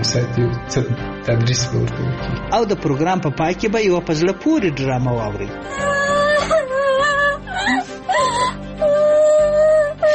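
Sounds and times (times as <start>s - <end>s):
speech: 0.1s - 6.5s
child crying in a drama scene: 5.7s - 10.1s.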